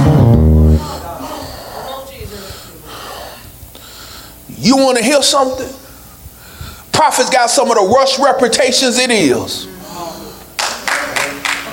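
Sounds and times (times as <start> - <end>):
speech: 4.6 - 5.8, 7.0 - 9.7
audience clapping: 10.6 - 11.7.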